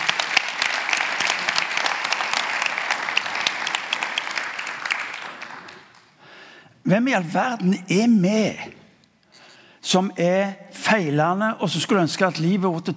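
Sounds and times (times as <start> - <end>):
audience clapping: 0.0 - 6.2
speech: 6.8 - 8.8, 9.9 - 12.9.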